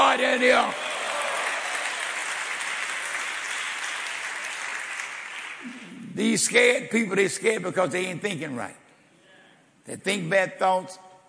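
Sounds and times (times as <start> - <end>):
audience clapping hands: 0.0 - 6.6
speech: 0.2 - 0.9, 5.6 - 8.8, 9.9 - 11.1.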